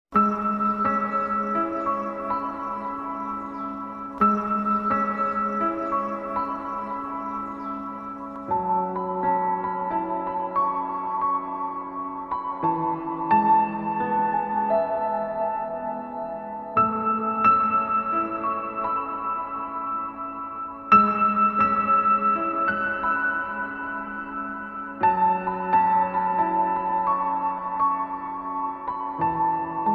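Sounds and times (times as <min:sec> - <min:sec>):
sad background music: 0:00.2 - 0:29.9.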